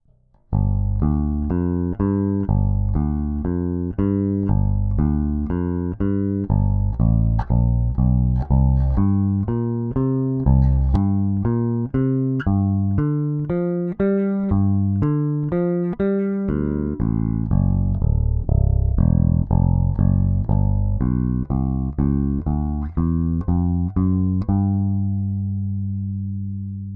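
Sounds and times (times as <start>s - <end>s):
AER AMP One amplified instrument with high mid boost: 0.5s - 26.8s.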